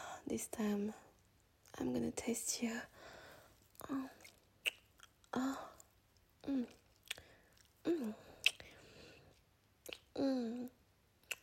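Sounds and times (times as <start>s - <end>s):
speech: 0.3s - 1.1s, 1.8s - 2.9s, 3.8s - 4.2s, 5.3s - 5.7s, 6.4s - 6.8s, 7.9s - 8.3s, 10.2s - 10.7s
eating and chewing food: 3.7s - 10.2s, 11.2s - 11.4s
mouth clicks and smacks: 3.7s - 11.4s.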